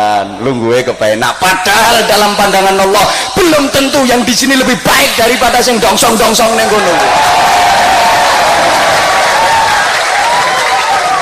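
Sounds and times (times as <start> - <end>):
speech: 0.2 - 8.1
audience applause: 6.7 - 11.2.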